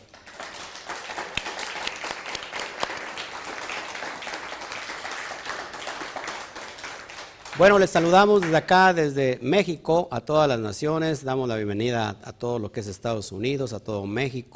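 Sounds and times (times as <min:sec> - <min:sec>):
audience applause: 0:00.0 - 0:08.6
speech: 0:07.6 - 0:14.5.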